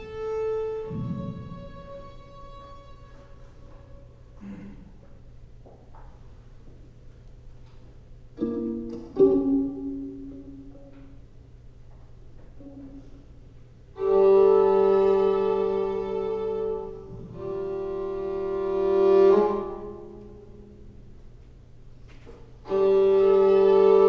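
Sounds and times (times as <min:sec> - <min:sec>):
violin: 0:00.0 - 0:04.4, 0:08.4 - 0:11.3, 0:13.8 - 0:24.0.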